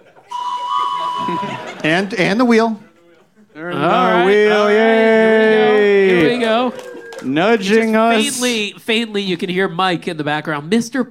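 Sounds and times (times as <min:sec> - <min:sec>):
laughter: 0:00.0 - 0:08.6
whistle blast: 0:00.3 - 0:01.8
speech: 0:01.3 - 0:02.9, 0:03.6 - 0:05.3, 0:07.2 - 0:11.0.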